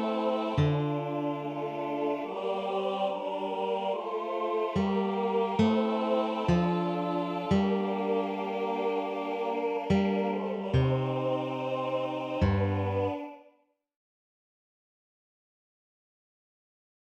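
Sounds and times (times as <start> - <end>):
bass voice singing a psalm setting: 0.0 - 13.5.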